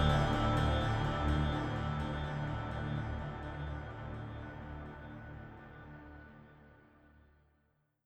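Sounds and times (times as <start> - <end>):
scoring guitars: 0.0 - 4.4.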